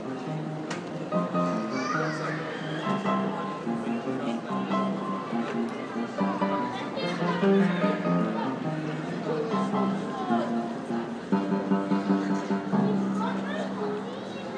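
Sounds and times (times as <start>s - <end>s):
little boys playing the piano: 0.0s - 14.5s.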